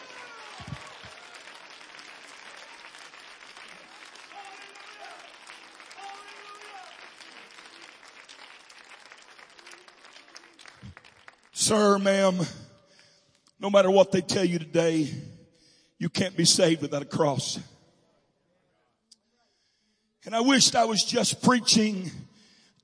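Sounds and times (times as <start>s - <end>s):
audience shouting: 0.0s - 1.6s, 4.0s - 7.7s
audience clapping: 0.0s - 12.4s
speech: 11.7s - 12.6s, 13.6s - 15.3s, 16.0s - 17.7s, 20.3s - 22.8s.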